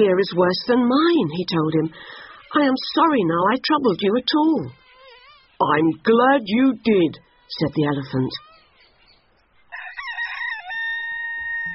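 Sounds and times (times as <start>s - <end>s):
speech: 0.0s - 4.8s, 5.6s - 8.4s
rooster crowing: 9.6s - 11.7s.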